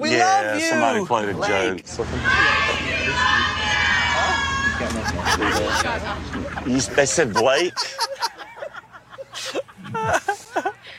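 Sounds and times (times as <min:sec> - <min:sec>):
speech: 0:00.0 - 0:03.8, 0:04.8 - 0:08.3
fans cheering at meet and greet: 0:02.2 - 0:08.9
laughter: 0:04.4 - 0:10.9.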